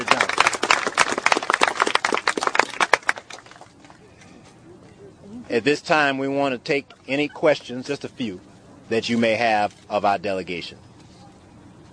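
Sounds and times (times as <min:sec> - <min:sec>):
audience applause: 0:00.0 - 0:03.7
speech: 0:05.5 - 0:10.8.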